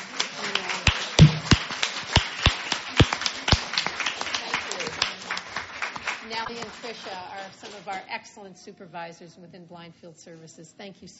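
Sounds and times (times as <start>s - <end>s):
audience applause: 0.0s - 7.8s
faint murmur: 0.0s - 11.1s
speech: 6.6s - 11.1s.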